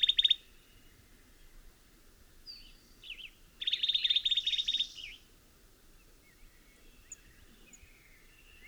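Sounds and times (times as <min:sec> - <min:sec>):
bird song with buzzy notes and dry rapid trill: 0:00.0 - 0:01.5, 0:02.4 - 0:05.3, 0:06.0 - 0:08.6.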